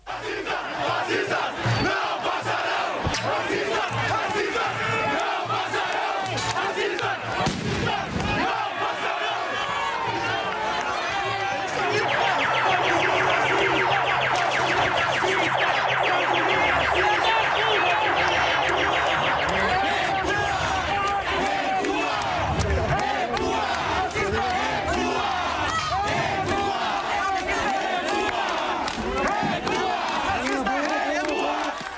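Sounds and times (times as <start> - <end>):
protest crowd shouting outside a supermarket: 0.0 - 31.9
sharp bangs: 11.7 - 22.5.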